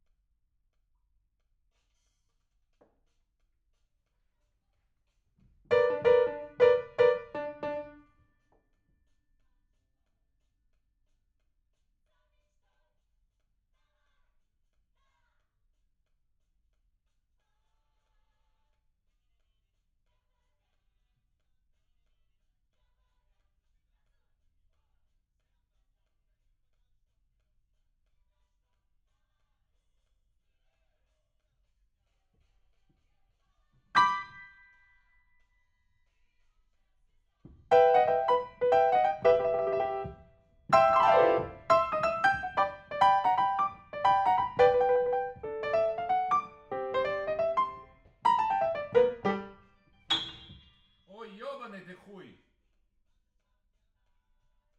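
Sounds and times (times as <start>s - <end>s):
rock and roll piano: 5.7s - 8.0s, 34.0s - 34.6s, 37.6s - 50.6s.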